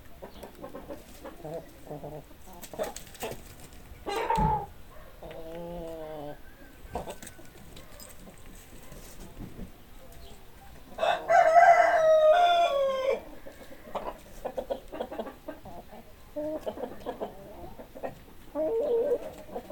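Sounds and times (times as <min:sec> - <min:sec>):
chicken clucking: 0:00.0 - 0:19.7
rooster crowing: 0:11.0 - 0:13.3.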